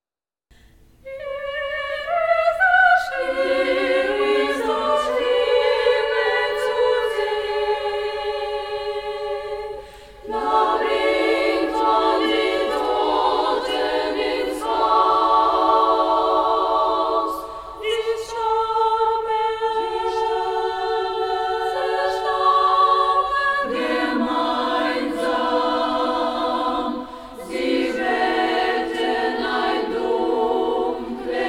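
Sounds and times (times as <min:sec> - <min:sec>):
closing chorus singing: 0:01.0 - 0:31.4.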